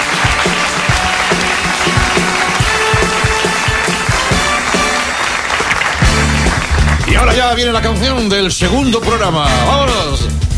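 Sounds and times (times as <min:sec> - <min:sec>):
audience applause: 0:00.0 - 0:07.4
speech: 0:07.4 - 0:10.4.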